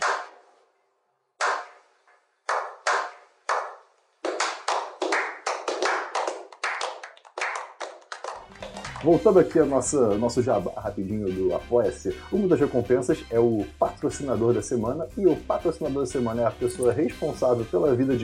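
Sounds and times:
applause sound effect: 0.0 - 0.4, 1.4 - 1.8, 2.5 - 9.6
speech: 9.0 - 18.2.

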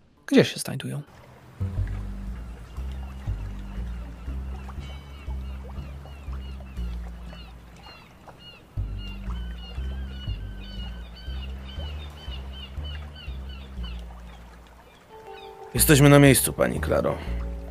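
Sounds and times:
speech: 0.3 - 1.8, 15.8 - 17.4
boat engines rumbling at harbor docks: 1.0 - 17.6
lapping water at harbor docks: 1.1 - 17.6
bird calls and quacks: 2.6 - 15.8.

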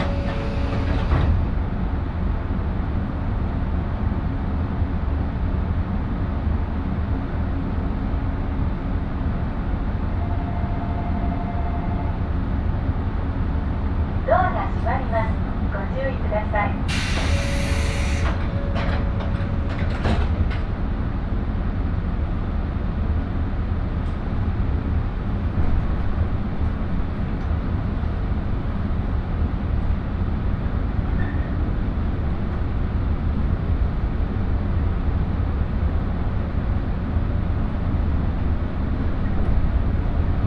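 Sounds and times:
train ride rumble on the Shinano Railway line: 0.0 - 40.4
brief tone: 10.2 - 12.1, 17.2 - 19.5.

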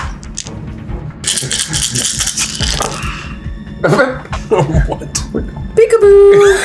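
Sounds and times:
dice rattling across a table: 0.2 - 0.5, 1.2 - 3.1
speech: 1.4 - 2.9, 3.8 - 6.6.

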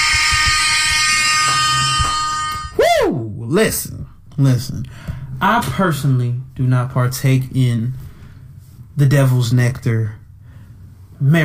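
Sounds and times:
air horn sound effect: 0.0 - 2.8
speech: 3.5 - 8.0, 9.0 - 10.2, 11.2 - 11.4.

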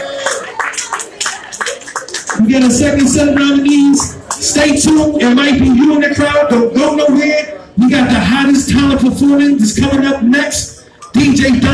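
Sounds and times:
audience clapping: 0.0 - 5.2
speech: 2.4 - 11.7.

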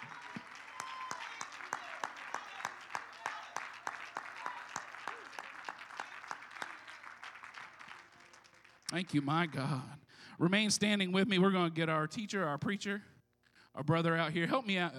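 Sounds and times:
audience clapping hands: 0.0 - 9.8
speech: 8.9 - 13.1, 13.8 - 14.9.

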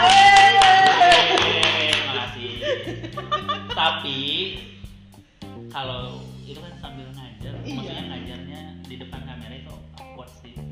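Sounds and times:
hand clapping: 0.0 - 2.6
laughter: 0.6 - 4.3, 7.7 - 8.5
speech: 5.8 - 10.6.

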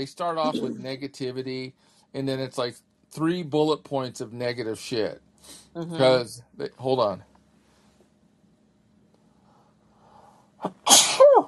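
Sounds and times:
speech: 0.0 - 7.3, 10.6 - 11.0
person sneezing: 0.5 - 0.9, 10.6 - 11.4.

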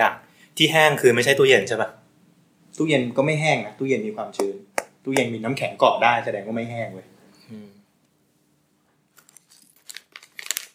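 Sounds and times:
speech: 0.0 - 2.0, 2.8 - 7.7
plastic snack packet crinkled and torn open: 9.1 - 10.7.

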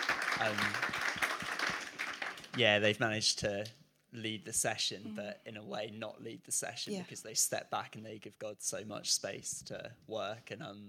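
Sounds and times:
round of applause: 0.0 - 2.9
speech: 0.4 - 1.0, 2.6 - 10.8.

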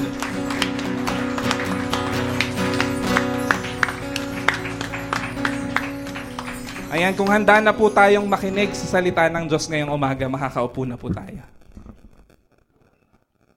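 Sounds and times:
audience applause: 0.0 - 8.9
speech: 7.0 - 11.6.

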